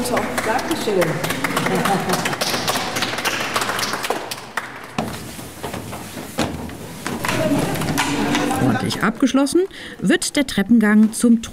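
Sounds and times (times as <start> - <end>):
speech: 0.0 - 2.4, 8.9 - 11.5
children applauding: 0.0 - 5.2
laughter: 1.2 - 3.2, 7.4 - 9.2.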